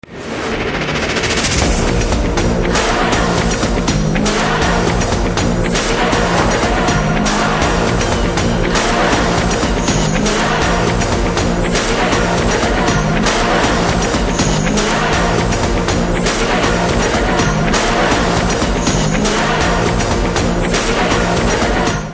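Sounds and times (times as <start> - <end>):
trailer background music: 0.0 - 22.1.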